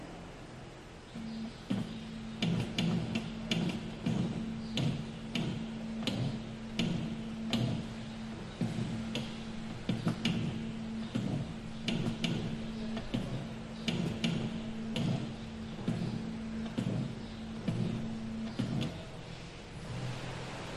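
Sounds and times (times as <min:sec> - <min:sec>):
car hood sounds in an auto repair shop: 0:01.2 - 0:20.7.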